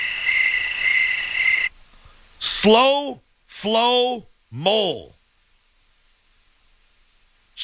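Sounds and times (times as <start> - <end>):
voice imitating crickets chirping: 0.0 - 1.7
speech: 2.6 - 5.2.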